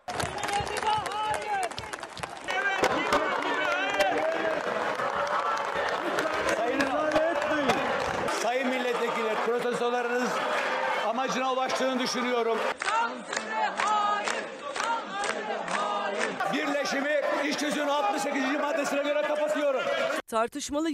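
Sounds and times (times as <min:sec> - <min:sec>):
bursts of clapping in an assembly protest: 0:00.0 - 0:10.7, 0:12.7 - 0:16.4
many voices shouting and chanting in an assembly protest: 0:00.0 - 0:20.2
speech: 0:12.1 - 0:12.7, 0:20.3 - 0:20.9.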